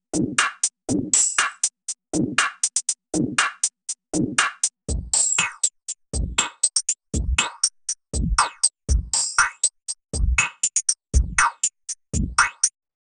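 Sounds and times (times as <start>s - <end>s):
drum loop through a frequency shifter: 0.2s - 12.7s.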